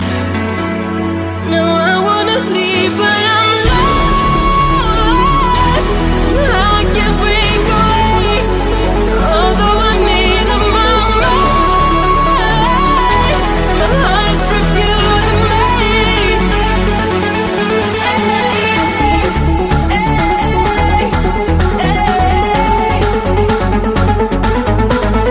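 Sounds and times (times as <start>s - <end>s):
trance music ringtone: 0.0s - 25.2s.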